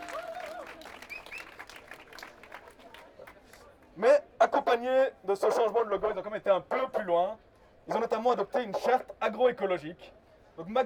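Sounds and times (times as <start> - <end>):
audience applauding: 0.0 - 2.9
speech: 4.0 - 10.8.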